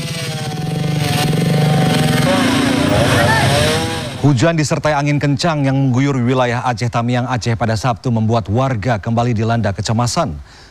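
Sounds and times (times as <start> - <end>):
chainsaw cutting into a tree trunk: 0.0 - 4.2
speech: 4.2 - 10.6.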